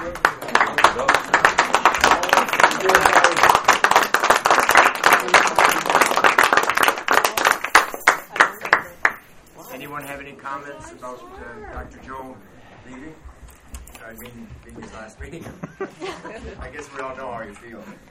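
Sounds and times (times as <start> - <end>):
standing round of applause: 0.0 - 9.3
speech: 10.5 - 13.3, 14.1 - 18.0
laughter: 14.8 - 17.3.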